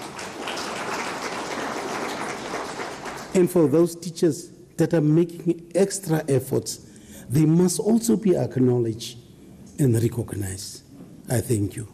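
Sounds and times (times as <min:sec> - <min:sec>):
crowd applause: 0:00.0 - 0:03.4
speech: 0:03.4 - 0:09.2, 0:09.8 - 0:11.9.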